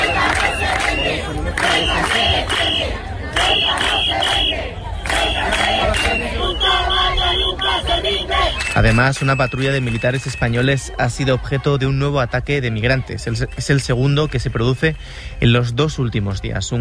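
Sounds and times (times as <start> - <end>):
protest crowd chanting: 0.0 - 14.2
crowd babble: 0.0 - 16.8
whistles: 0.4 - 2.9, 3.8 - 10.7, 13.4 - 14.6
speech: 8.8 - 16.8.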